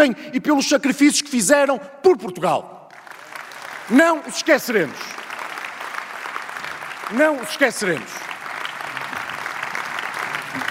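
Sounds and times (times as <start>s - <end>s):
speech: 0.0s - 2.8s, 3.9s - 5.2s, 7.1s - 8.3s
large crowd giving standing applause during a political speech: 2.9s - 10.6s.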